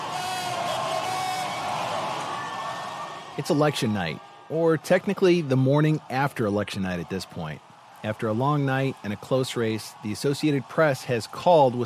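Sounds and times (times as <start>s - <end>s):
whoops and shouts: 0.0s - 3.4s
election night crowd cheering wildly: 0.0s - 11.8s
speech: 3.4s - 11.8s.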